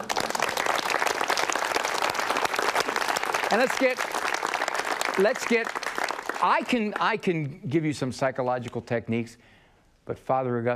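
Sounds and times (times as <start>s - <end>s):
audience applause: 0.0s - 7.2s
speech: 3.5s - 4.1s, 5.2s - 5.8s, 6.4s - 9.5s, 10.1s - 10.7s.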